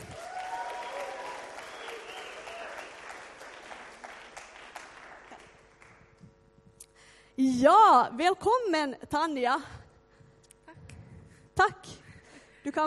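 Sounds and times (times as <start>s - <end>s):
audience applause: 0.0s - 6.1s
speech: 7.6s - 9.8s.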